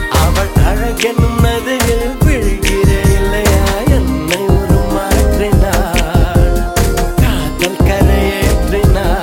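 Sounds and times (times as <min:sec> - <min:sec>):
Hindi melody: 0:00.0 - 0:09.2.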